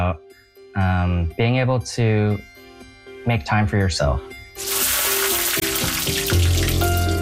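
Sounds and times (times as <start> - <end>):
speech: 0.0 - 0.2, 0.8 - 2.6, 3.2 - 5.0
diced onion frying in melted butter in a hot pan: 4.6 - 7.2.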